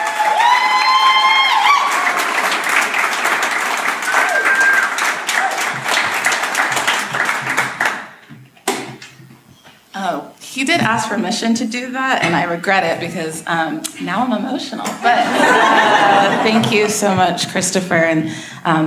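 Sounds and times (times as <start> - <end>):
audience applause for a departing guest: 0.0 - 8.2
speech: 10.7 - 18.8
laughter: 15.0 - 17.2.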